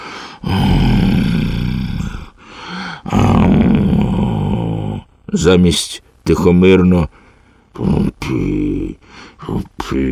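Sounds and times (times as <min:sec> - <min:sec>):
snoring with strange groaning: 0:00.0 - 0:05.1
speech: 0:05.3 - 0:07.2, 0:07.8 - 0:10.1.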